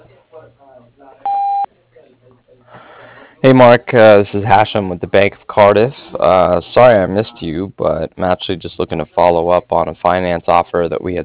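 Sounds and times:
voicemail beep: 1.3 - 1.7
speech: 3.4 - 11.2.

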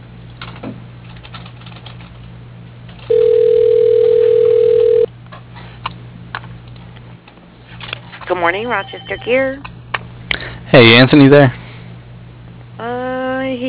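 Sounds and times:
low constant hum: 0.0 - 13.6
steady mid-pitched phone tone: 3.1 - 5.1
speech: 8.4 - 9.7, 10.7 - 11.6.

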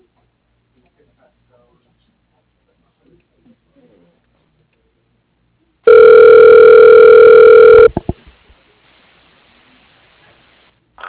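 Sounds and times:
telephone ringing during call transfer: 5.9 - 8.0.

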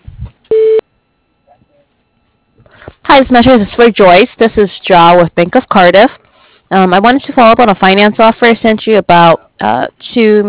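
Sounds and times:
voicemail beep: 0.5 - 0.8
speech: 3.2 - 10.4.

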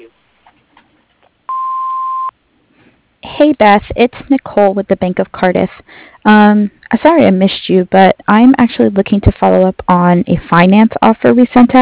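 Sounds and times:
answering machine beep on a machine-works business's phone line: 1.5 - 2.3
speech: 3.4 - 11.7.

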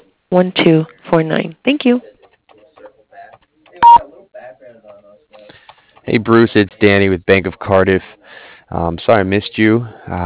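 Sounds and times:
speech: 0.3 - 2.1, 6.1 - 10.2
voicemail message tone beep: 3.8 - 4.0.

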